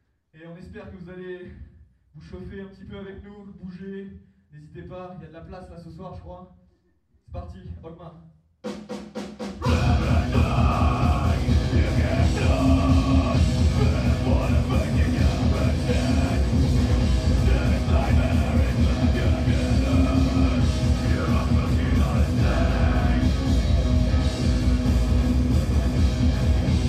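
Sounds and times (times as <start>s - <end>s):
metal music at a concert: 9.6s - 26.8s.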